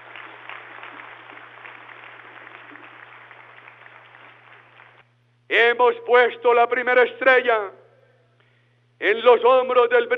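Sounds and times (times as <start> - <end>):
audience applause: 0.0 - 5.1
speech: 5.5 - 7.8, 9.0 - 10.1.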